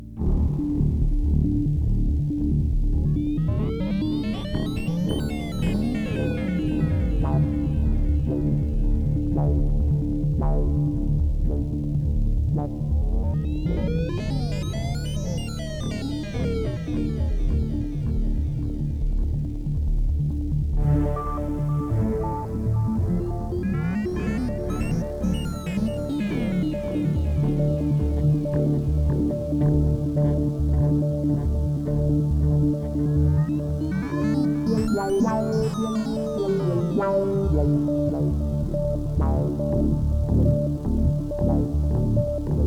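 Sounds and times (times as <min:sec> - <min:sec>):
space bass intro music: 0:00.0 - 0:42.6.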